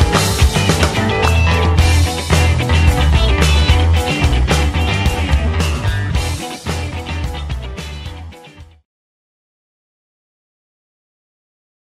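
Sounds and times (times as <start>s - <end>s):
zouk music: 0.0s - 8.8s.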